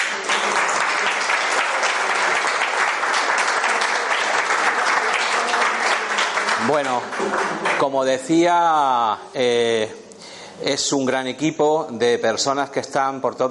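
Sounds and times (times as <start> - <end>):
audience applause: 0.0 - 8.1
speech: 6.7 - 10.0, 10.6 - 13.5.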